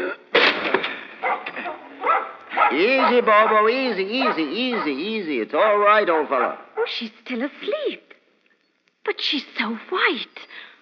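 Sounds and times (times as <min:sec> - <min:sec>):
door forced open with heavy chair: 0:00.3 - 0:04.6
speech: 0:02.7 - 0:08.1, 0:09.0 - 0:10.7.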